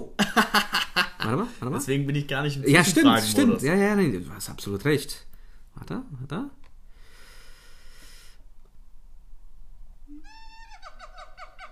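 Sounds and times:
speech: 0.0 - 6.6
monkey calling: 10.1 - 11.7.

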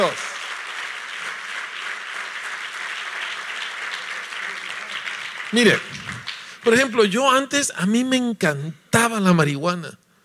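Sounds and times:
speech: 0.0 - 0.3, 5.5 - 10.0
audience applause: 0.0 - 7.1.

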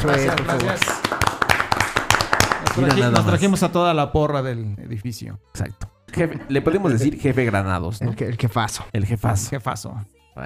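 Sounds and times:
speech: 0.0 - 1.0, 2.7 - 10.4
small group hand clapping: 0.0 - 3.5.

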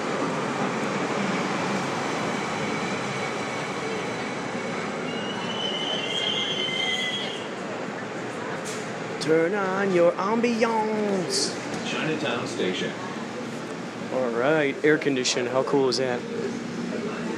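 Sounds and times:
train riding on rails: 0.0 - 17.3
train wheels squealing: 5.0 - 7.5
speech: 9.3 - 13.0, 14.1 - 16.6.

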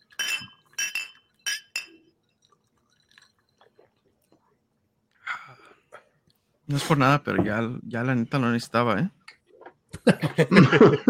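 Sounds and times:
glasses clinking in a toast: 0.0 - 4.4
speech: 6.7 - 9.2, 10.0 - 11.0
laughter: 10.0 - 11.0.

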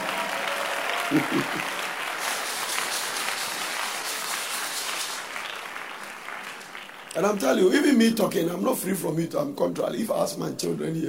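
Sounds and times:
audience applause: 0.0 - 8.2
laughter: 0.9 - 1.9
speech: 1.1 - 1.8, 7.2 - 11.0.

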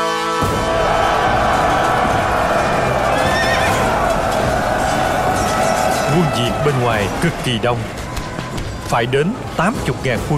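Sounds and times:
rumbling crowd-like roar: 0.2 - 10.3
galloping hooves: 0.9 - 9.7
horse neighing: 3.1 - 3.9
speech: 6.4 - 8.0, 8.9 - 10.3.

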